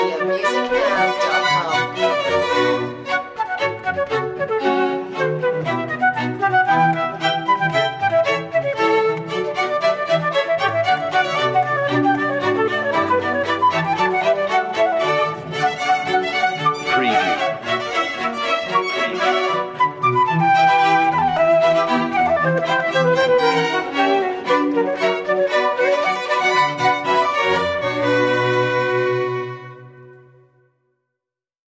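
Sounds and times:
orchestral baroque piece in B minor: 0:00.0 - 0:30.6.

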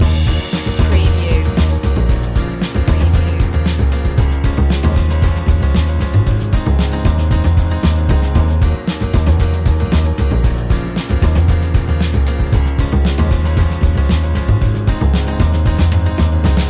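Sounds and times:
funky jazzy flow loop: 0:00.0 - 0:16.6.

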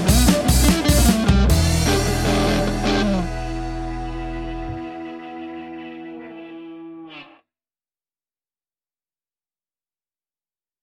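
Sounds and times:
bikers blues music: 0:00.0 - 0:07.4.

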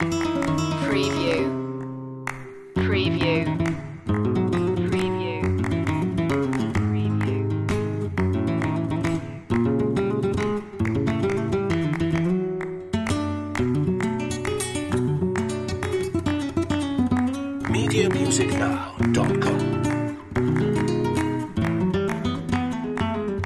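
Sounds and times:
solea por buleria flamenco loop: 0:00.0 - 0:23.4.

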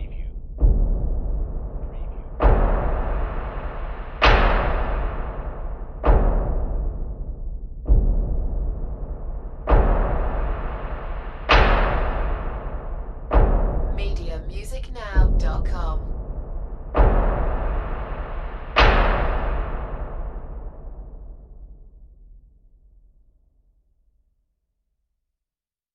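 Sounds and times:
production element music bed hits: 0:00.0 - 0:14.2, 0:16.9 - 0:21.2.

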